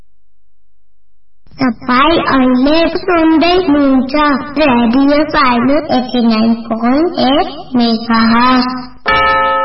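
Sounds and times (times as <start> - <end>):
speech: 1.6 - 8.9
radio station time signal marking six o'clock: 6.6 - 9.5.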